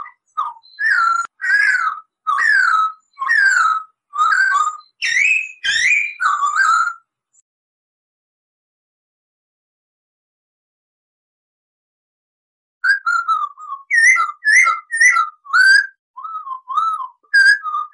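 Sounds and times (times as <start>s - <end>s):
Masked laughingthrush singing loud whistled and chattering notes: 0.0s - 7.0s, 12.8s - 17.9s.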